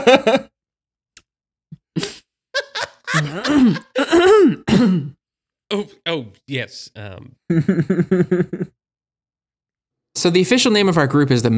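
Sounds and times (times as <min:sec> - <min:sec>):
speech: 0:00.1 - 0:00.5, 0:03.1 - 0:08.7, 0:10.2 - 0:11.5
laughter: 0:02.6 - 0:04.1, 0:06.1 - 0:08.7
throat clearing at one end of a table: 0:03.3 - 0:05.2.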